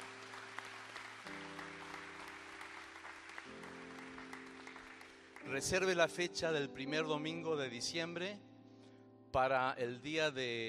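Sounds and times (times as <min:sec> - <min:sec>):
audience applauding: 0:00.0 - 0:06.0
speech: 0:05.4 - 0:08.5, 0:09.3 - 0:10.6.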